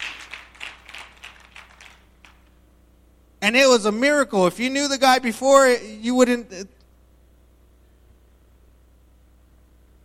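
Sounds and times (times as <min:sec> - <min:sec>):
audience clapping: 0:00.0 - 0:02.5
speech: 0:03.4 - 0:06.8.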